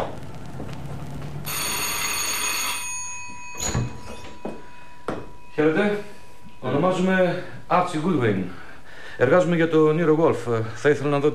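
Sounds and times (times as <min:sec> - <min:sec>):
doorbell ringing: 0:01.5 - 0:07.0
speech: 0:05.6 - 0:06.1, 0:06.8 - 0:08.6, 0:09.2 - 0:11.3.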